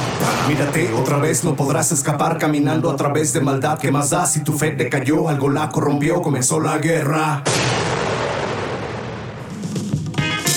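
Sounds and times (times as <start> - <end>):
cannon blasts: 0.0 - 2.5, 7.4 - 9.8
speech: 0.5 - 8.1.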